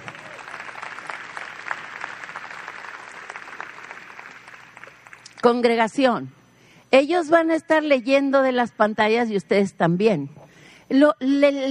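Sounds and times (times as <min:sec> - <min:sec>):
audience applause: 0:00.0 - 0:05.3
speech: 0:05.4 - 0:11.6.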